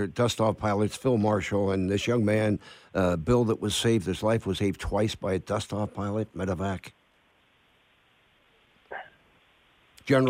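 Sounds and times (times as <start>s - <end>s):
speech: 0.0s - 7.0s, 10.1s - 10.2s
dog barking: 8.9s - 9.2s.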